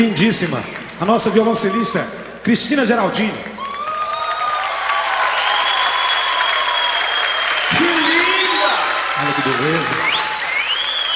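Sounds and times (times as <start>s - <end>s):
speech: 0.0s - 3.6s
audience applause: 0.0s - 11.1s.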